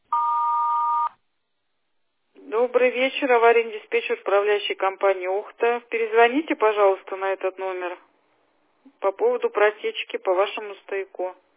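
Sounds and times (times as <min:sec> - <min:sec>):
answering machine beep before voice message: 0:00.1 - 0:01.2
speech: 0:02.6 - 0:08.1, 0:08.9 - 0:11.5.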